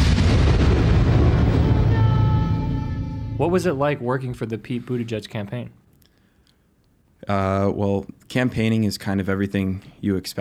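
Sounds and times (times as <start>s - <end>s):
thunder of an approaching storm: 0.0s - 3.7s
speech: 3.4s - 5.8s, 7.2s - 10.3s.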